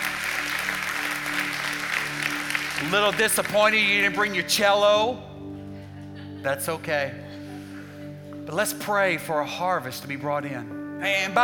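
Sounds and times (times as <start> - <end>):
audience applause: 0.0 - 4.4
speech: 2.8 - 5.3, 6.4 - 7.2, 8.5 - 11.4.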